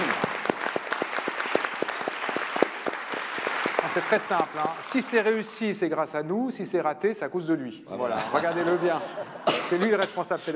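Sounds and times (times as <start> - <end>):
audience applause: 0.0 - 5.4
speech: 3.9 - 10.5
laughter: 8.0 - 10.5.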